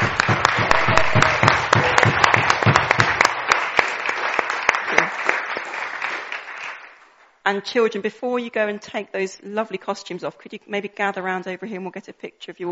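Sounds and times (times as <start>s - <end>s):
audience applause: 0.0s - 7.0s
speech: 7.5s - 12.7s.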